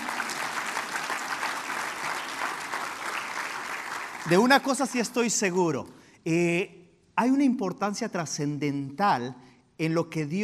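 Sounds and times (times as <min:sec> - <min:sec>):
audience applause: 0:00.0 - 0:04.8
speech: 0:04.2 - 0:10.4.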